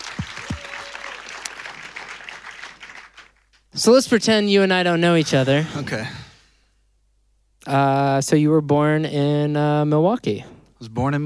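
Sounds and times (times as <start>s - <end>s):
audience applause: 0.0s - 3.5s
speech: 3.8s - 6.2s, 7.7s - 11.2s.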